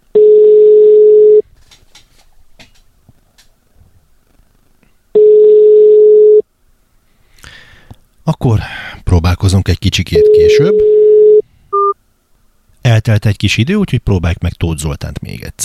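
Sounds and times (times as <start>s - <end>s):
telephone ringback tones: 0.1s - 1.4s, 5.2s - 6.4s, 10.2s - 12.0s
speech: 8.4s - 11.0s, 12.9s - 15.6s.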